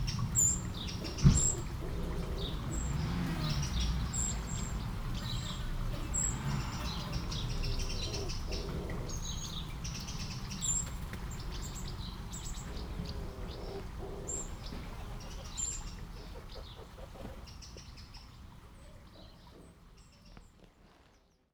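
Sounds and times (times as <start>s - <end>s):
Eurasian blackbird calling with clicking chatter and whistled notes by a small river: 0.0s - 18.0s.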